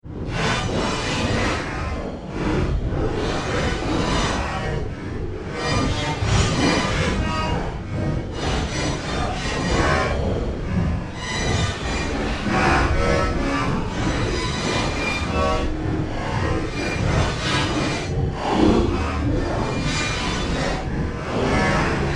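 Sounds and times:
robotic engineering science fiction sound effects: 0:00.2 - 0:22.1.

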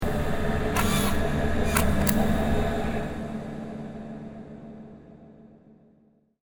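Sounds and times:
science fiction spaceship repair dock ambience: 0:00.0 - 0:05.2.

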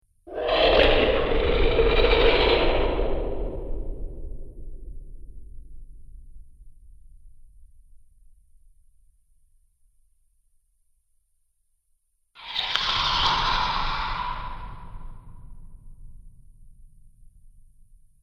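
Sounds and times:
menacing monster sounds: 0:00.3 - 0:04.1, 0:12.4 - 0:15.3.

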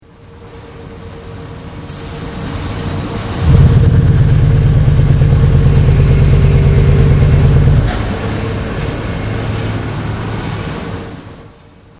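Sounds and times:
unknown industrial machinery single cycle: 0:00.0 - 0:11.9.

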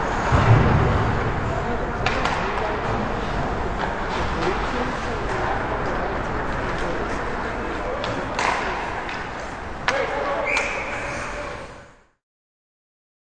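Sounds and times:
various sounds of a hockey match: 0:00.0 - 0:11.9.

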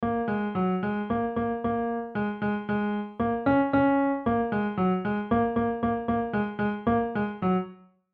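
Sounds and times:
piano playing a nursery rhyme: 0:00.0 - 0:07.9.

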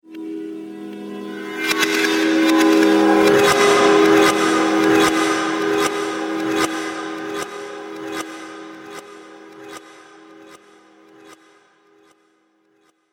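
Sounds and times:
odd magical scary ambience: 0:00.3 - 0:10.5.

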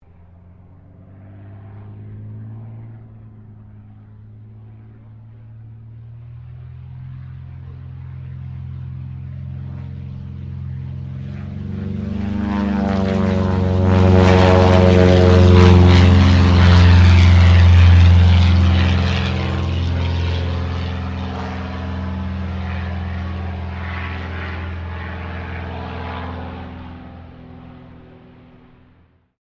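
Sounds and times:
RAAF CT4 training aircraft passing: 0:00.0 - 0:29.3.

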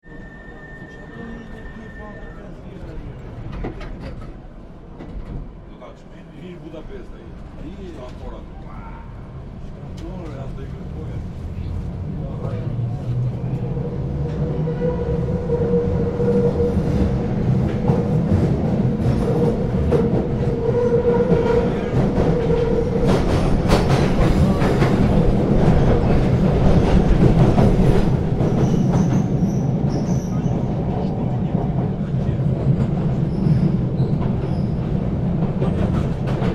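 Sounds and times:
underground subway train interior travel: 0:00.0 - 0:36.5.

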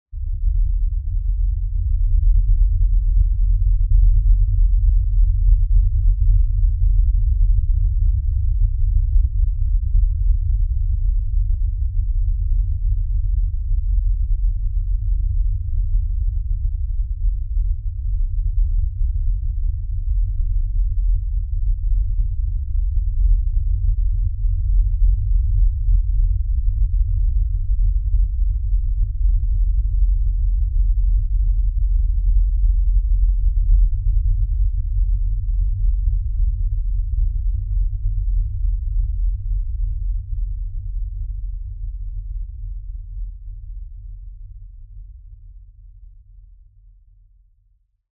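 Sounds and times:
low-frequency impact rumble: 0:00.2 - 0:45.4.

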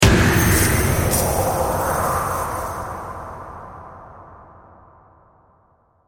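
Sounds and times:
horror hit of chains with ghostly reverb: 0:00.0 - 0:04.3.

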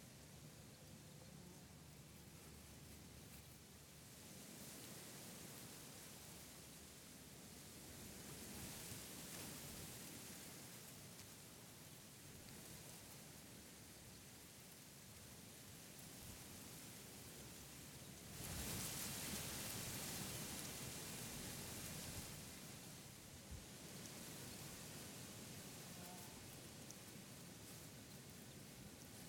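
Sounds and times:
moderate wind blowing across a wheat field: 0:00.0 - 0:29.2.

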